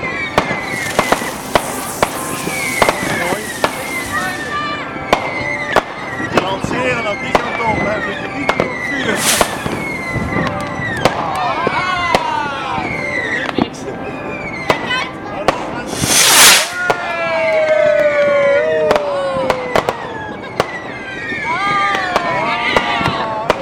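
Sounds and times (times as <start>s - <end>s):
new year celebration in Geldrop: 0.0s - 23.2s.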